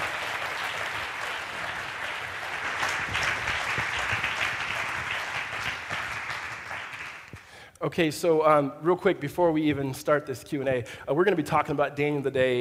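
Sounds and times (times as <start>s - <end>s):
audience applause welcoming a man to lead a Q&A at a church gathering: 0.0s - 7.5s
speech: 7.8s - 12.6s.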